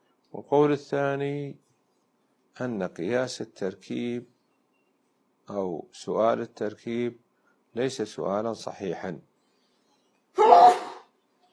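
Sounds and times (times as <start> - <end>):
speech: 0.3 - 1.7, 2.6 - 4.3, 5.5 - 9.3, 10.4 - 10.8
sneeze during an Arabic lecture on jurisprudence: 10.4 - 11.1.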